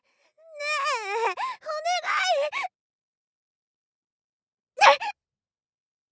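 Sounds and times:
ASMR voice: 0.6s - 2.7s, 4.8s - 5.1s.

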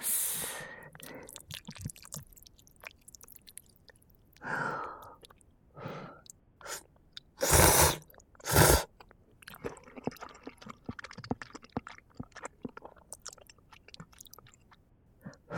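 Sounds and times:
chewing: 0.9s - 4.5s, 8.0s - 15.4s.

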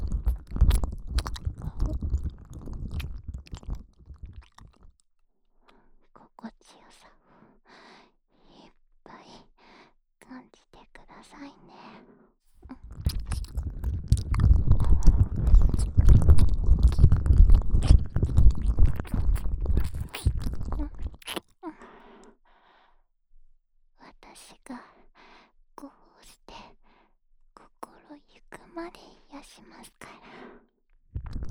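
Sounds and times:
ear licking in the left ear: 0.0s - 5.0s, 12.6s - 21.4s.

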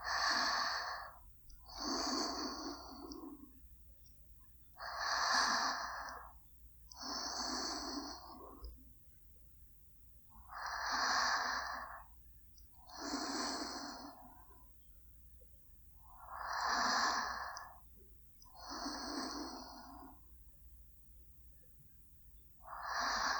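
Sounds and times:
sleeping breaths: 0.0s - 3.6s, 4.8s - 8.7s, 10.4s - 12.1s, 12.9s - 14.7s, 16.0s - 17.9s, 18.6s - 20.2s, 22.6s - 23.3s.

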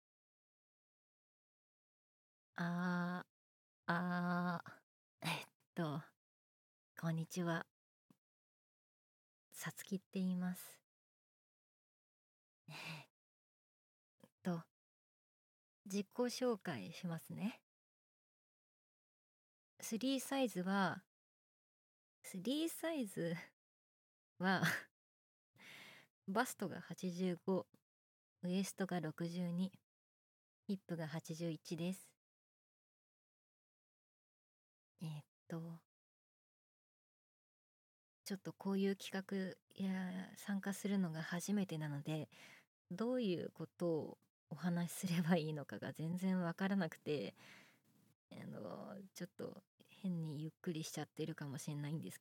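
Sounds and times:
boyish new female voice actress performing: 2.6s - 3.3s, 3.9s - 6.1s, 7.0s - 7.7s, 9.6s - 10.8s, 14.4s - 14.7s, 15.9s - 17.6s, 19.8s - 21.0s, 22.3s - 23.5s, 24.4s - 24.9s, 26.3s - 27.7s, 28.4s - 29.8s, 30.7s - 32.2s, 35.0s - 35.8s, 38.3s - 47.4s, 48.3s - 52.1s.

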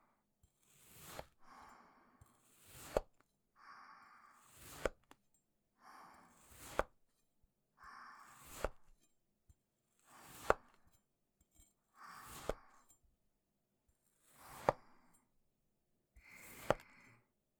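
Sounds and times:
cutting sand clay: 0.6s - 1.4s, 2.4s - 3.2s, 4.3s - 5.2s, 6.2s - 7.0s, 8.2s - 9.0s, 10.0s - 11.0s, 12.0s - 12.8s, 14.2s - 15.2s, 16.2s - 17.1s.

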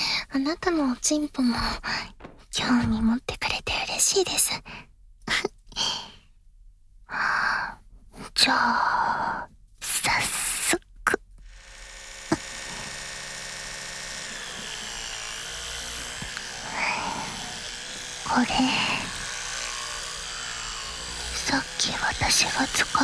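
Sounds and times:
speech: 0.3s - 6.1s, 7.1s - 10.4s, 18.3s - 19.1s, 21.5s - 23.0s
electric toothbrush buzzing: 9.8s - 23.0s.

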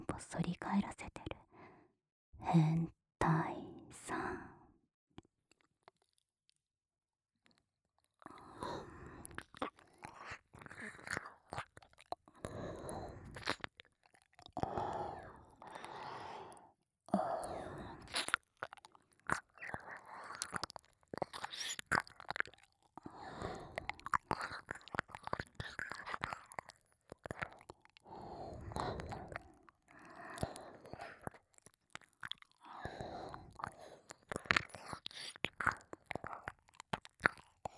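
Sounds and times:
speech: 0.2s - 1.3s, 2.4s - 3.0s
wet sticky mouth sounds with clicks and smacks: 8.4s - 37.7s
slow audible breaths: 14.6s - 18.1s, 28.1s - 31.2s, 32.6s - 34.3s.

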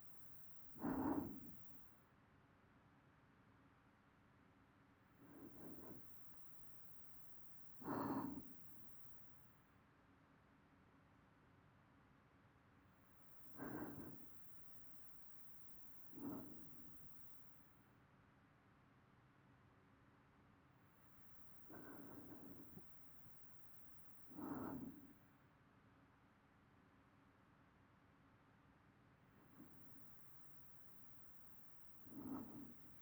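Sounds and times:
person breathing in sleep loop: 0.6s - 1.8s, 5.2s - 9.2s, 13.4s - 17.4s, 21.3s - 25.2s, 29.6s - 33.0s.

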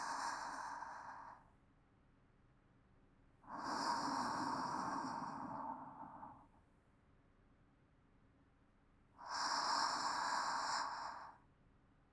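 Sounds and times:
calm sleep breathing: 0.0s - 1.5s, 3.5s - 6.6s, 9.2s - 11.4s.

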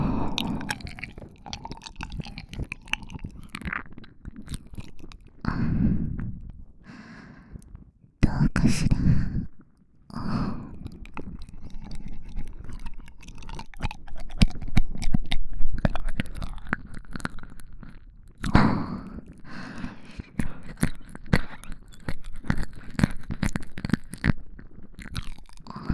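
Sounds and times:
binaural ear licking ASMR: 0.0s - 7.0s, 10.1s - 25.9s
binaural whispering ASMR: 8.2s - 9.1s.

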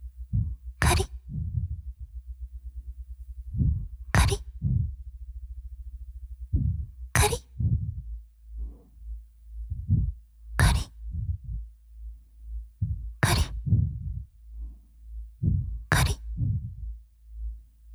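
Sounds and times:
ASMR scratching loop: 0.4s - 2.0s, 3.6s - 5.0s, 6.6s - 8.1s, 9.7s - 11.6s, 12.8s - 14.2s, 15.4s - 16.9s.

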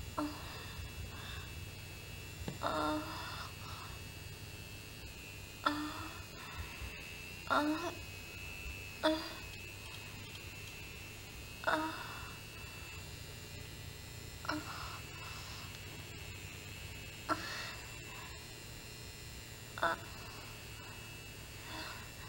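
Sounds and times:
woman moaning while masturbating with a vibrator: 0.1s - 1.5s, 2.5s - 3.9s, 5.6s - 6.5s, 7.5s - 8.0s, 9.0s - 9.5s, 11.6s - 12.5s, 14.5s - 15.6s, 17.3s - 18.4s, 19.8s - 21.1s, 21.6s - 22.2s.

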